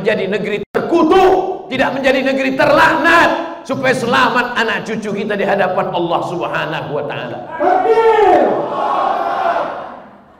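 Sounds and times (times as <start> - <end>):
speech: 0.0 - 9.7
crowd shouting takbir: 7.5 - 10.3.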